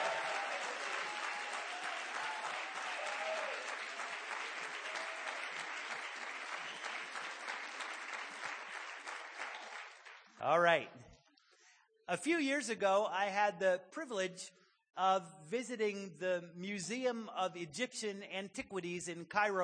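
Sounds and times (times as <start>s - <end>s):
audience applauding: 0.0s - 10.4s
speech: 10.4s - 11.0s, 12.1s - 19.6s.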